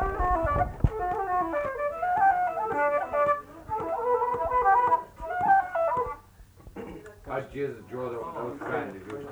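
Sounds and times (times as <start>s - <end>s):
flute solo: 0.0s - 6.4s
fiddle in E minor: 0.0s - 9.3s.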